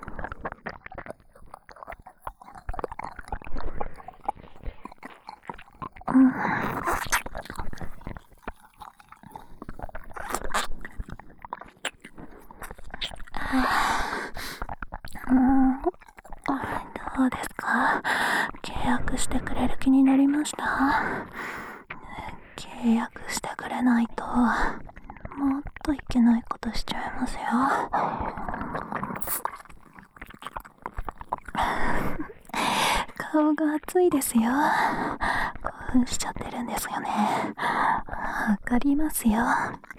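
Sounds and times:
ear licking sounds: 0.0 - 22.6, 27.8 - 33.2, 39.6 - 39.9
fellatio sounds: 0.0 - 39.9
nipple licking sounds: 0.0 - 39.9.

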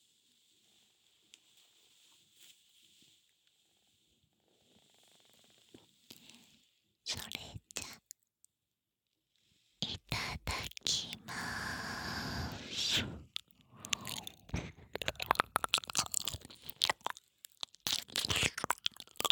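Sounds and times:
yandere maid licking ears: 9.8 - 19.3.

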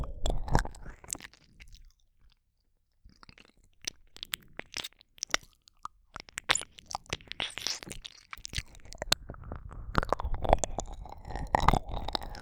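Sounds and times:
ASMR ear licking: 6.4 - 12.4.

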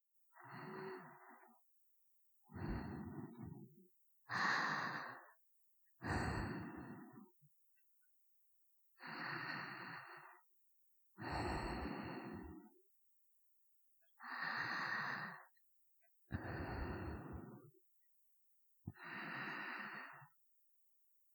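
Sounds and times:
person breathing in sleep: 0.3 - 1.6, 2.4 - 5.4, 6.0 - 7.4, 9.0 - 10.5, 11.2 - 12.8, 14.2 - 15.6, 16.3 - 17.7, 18.9 - 20.4.

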